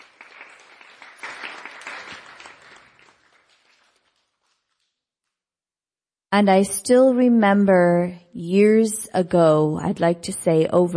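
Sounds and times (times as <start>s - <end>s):
crowd round of applause: 0.0s - 4.8s
speech: 6.3s - 10.9s.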